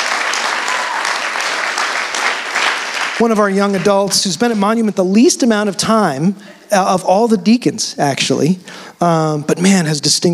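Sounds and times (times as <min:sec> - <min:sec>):
audience clapping during a church service: 0:00.0 - 0:04.2
speech: 0:03.2 - 0:10.3.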